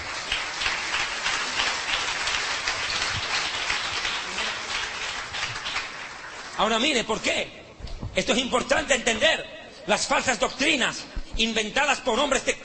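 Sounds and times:
church congregation applause during a sermon: 0:00.0 - 0:07.4
speech: 0:06.6 - 0:07.6, 0:08.2 - 0:12.6.

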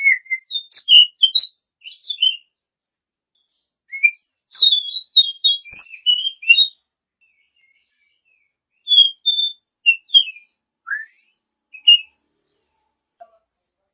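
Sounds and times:
champion Oriental magpie-robin song: 0:00.0 - 0:02.7, 0:03.4 - 0:12.8.

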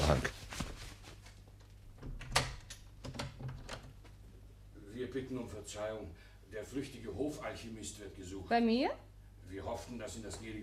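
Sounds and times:
speech: 0:00.1 - 0:00.4, 0:05.2 - 0:10.6
woman opening a door, handle clicks and rattles: 0:02.0 - 0:04.0.

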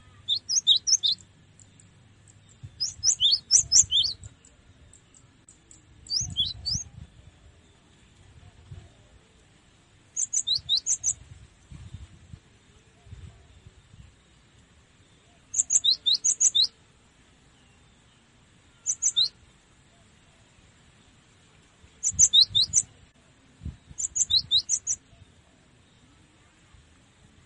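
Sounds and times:
cinereous tit singing high sharp two-pitched chirps: 0:00.0 - 0:07.0, 0:10.1 - 0:11.2, 0:15.4 - 0:16.8, 0:18.7 - 0:19.4, 0:21.9 - 0:23.0, 0:23.8 - 0:25.2.

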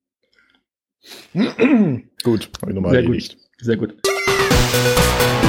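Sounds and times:
speech: 0:01.0 - 0:05.3
throat clearing: 0:01.1 - 0:02.1.

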